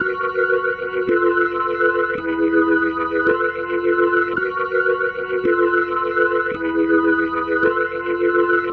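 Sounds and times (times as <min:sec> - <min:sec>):
psychedelic organ loop: 0:00.0 - 0:08.7.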